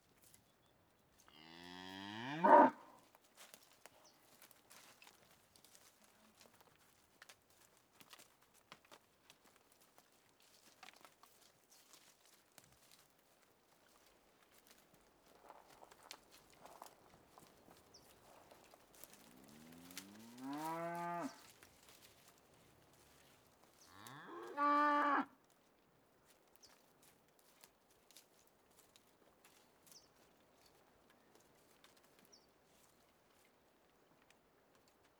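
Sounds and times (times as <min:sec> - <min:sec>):
cattle in countryside in Uruguay by day: 0:01.2 - 0:02.9, 0:14.6 - 0:25.4.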